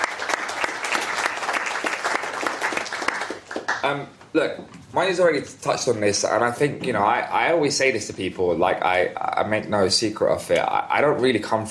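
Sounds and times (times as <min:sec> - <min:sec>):
audience applause: 0:00.0 - 0:04.0
speech: 0:03.8 - 0:11.6.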